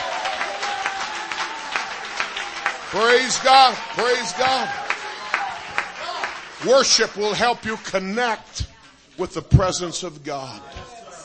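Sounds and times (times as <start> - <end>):
audience clapping hands: 0.0 - 8.7
speech: 2.9 - 4.8, 6.6 - 10.8.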